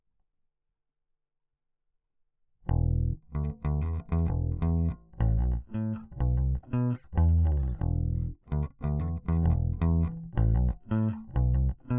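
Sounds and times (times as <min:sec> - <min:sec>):
bass: 0:02.7 - 0:11.9.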